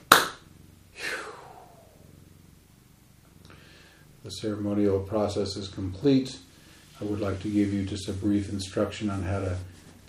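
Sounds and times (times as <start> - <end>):
group clapping together: 0.0 - 0.4
speech: 4.3 - 10.0.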